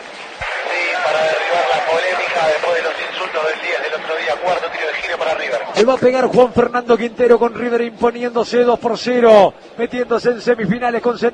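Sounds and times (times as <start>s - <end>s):
stadium crowd applauding: 0.0s - 6.8s
speech: 2.6s - 11.3s.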